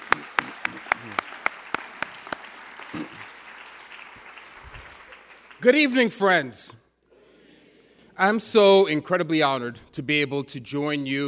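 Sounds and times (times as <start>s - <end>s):
audience applause: 0.0s - 5.6s
speech: 5.6s - 6.8s, 8.2s - 11.2s.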